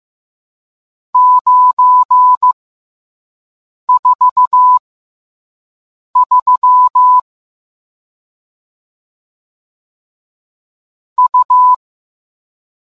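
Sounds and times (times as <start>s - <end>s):
morse code beeps: 1.2s - 2.6s, 3.9s - 4.8s, 6.2s - 7.2s, 11.2s - 11.8s.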